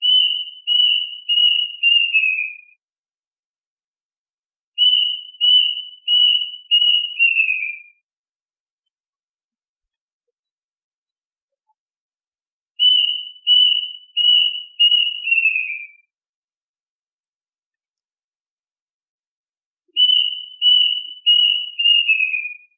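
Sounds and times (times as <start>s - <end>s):
duck whistled calls: 0.0s - 2.6s, 4.8s - 7.8s, 12.8s - 15.9s, 20.0s - 22.6s.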